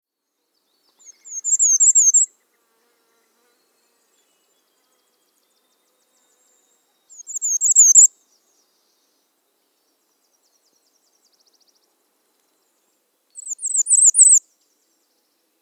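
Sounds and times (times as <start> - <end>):
bay-breasted warbler song: 0.3 - 2.6, 3.4 - 15.5.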